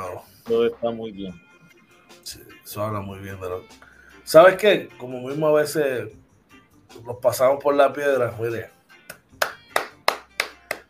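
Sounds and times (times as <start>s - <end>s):
speech: 0.5s - 1.4s, 2.3s - 6.2s, 6.9s - 8.8s
person clapping hands: 9.0s - 10.8s.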